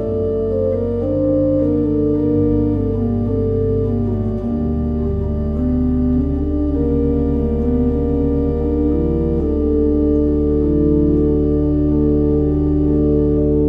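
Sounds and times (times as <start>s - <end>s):
pipe organ: 0.0s - 13.6s.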